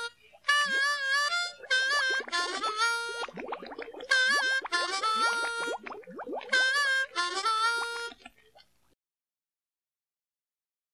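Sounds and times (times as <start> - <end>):
harmonica: 0.0 - 8.2.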